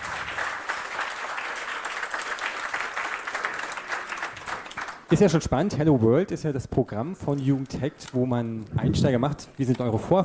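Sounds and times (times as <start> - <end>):
audience applause: 0.0 - 5.2
speech: 5.1 - 10.2.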